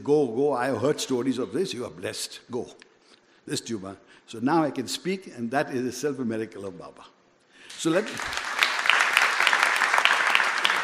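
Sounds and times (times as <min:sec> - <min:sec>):
speech: 0:00.0 - 0:02.9, 0:03.5 - 0:08.5
audience clapping: 0:07.7 - 0:10.8.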